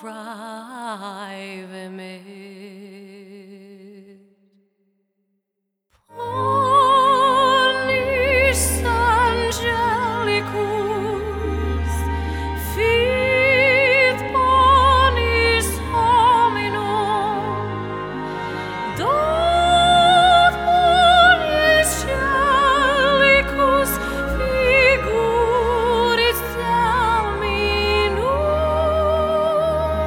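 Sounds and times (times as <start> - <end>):
woman singing classical songs in Irish Gaelic and English: 0.0 - 4.2, 6.1 - 30.0.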